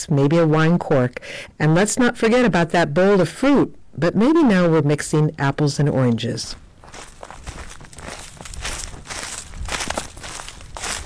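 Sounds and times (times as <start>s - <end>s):
speech: 0.0s - 7.1s
footsteps crunching on a forest trail in a shaded canyon: 6.0s - 11.0s.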